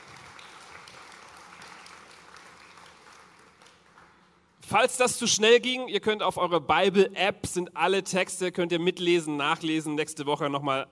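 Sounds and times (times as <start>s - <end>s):
audience applause: 0.0s - 4.3s
speech: 4.7s - 10.9s.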